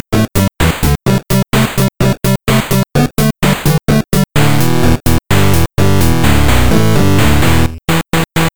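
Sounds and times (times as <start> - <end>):
eight-bit sound: 0.2 - 8.5.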